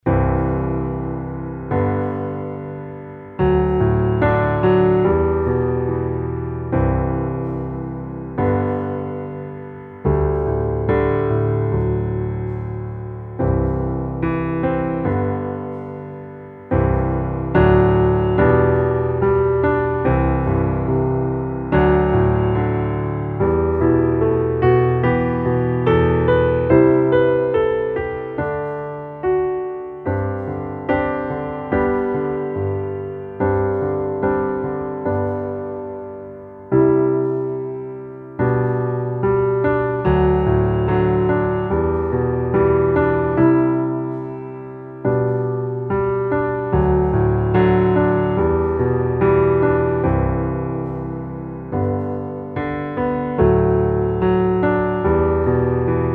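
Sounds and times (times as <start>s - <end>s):
piano underscore: 0.0s - 56.1s.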